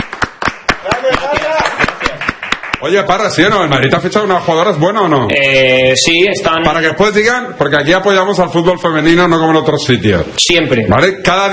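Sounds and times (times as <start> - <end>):
audience applause: 0.0 - 3.0
speech: 2.8 - 11.5.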